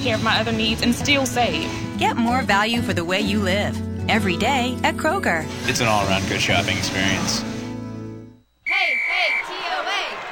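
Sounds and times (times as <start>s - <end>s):
speech: 0.0s - 7.5s
shrill sustained whistle: 8.6s - 9.8s
crowd cheering and yelling: 8.7s - 10.3s.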